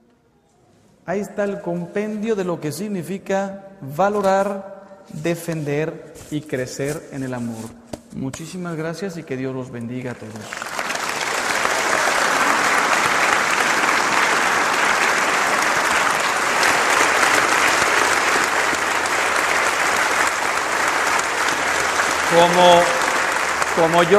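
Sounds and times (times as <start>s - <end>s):
speech: 1.1s - 10.6s, 22.3s - 23.0s, 23.8s - 24.1s
audience applause: 10.2s - 24.1s.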